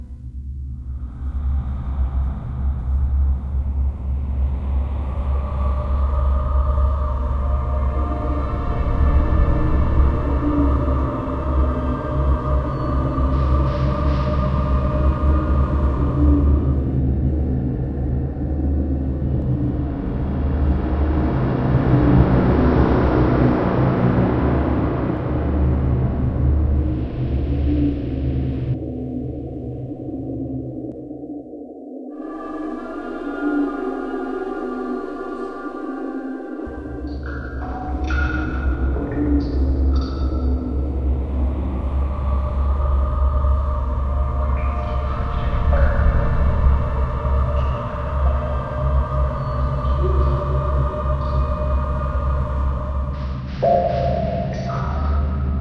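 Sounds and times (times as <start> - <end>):
glowing atmospheric background music: 0.0 - 55.5.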